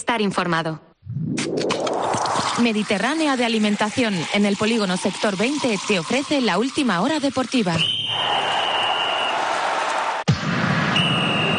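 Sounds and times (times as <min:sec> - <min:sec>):
speech: 0:00.0 - 0:01.8, 0:02.6 - 0:08.7
referee's whistle in a station jingle: 0:07.8 - 0:09.5, 0:10.9 - 0:11.5
loud crowd noise: 0:08.0 - 0:10.3.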